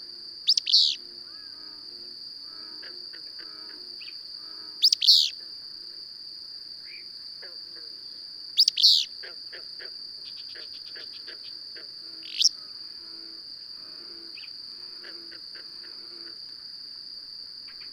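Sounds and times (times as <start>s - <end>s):
high insect-like whine: 0.0s - 17.9s
bird chirping: 0.5s - 1.0s, 4.8s - 5.3s, 8.6s - 9.1s, 12.2s - 12.5s.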